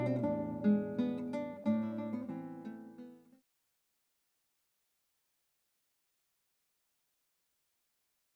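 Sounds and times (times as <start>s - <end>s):
guitar playing in a recital: 0.0s - 3.4s.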